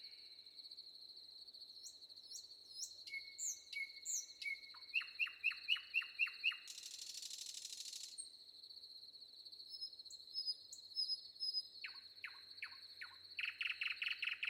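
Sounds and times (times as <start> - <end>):
common nightingale singing: 1.8 - 8.3, 9.7 - 14.4.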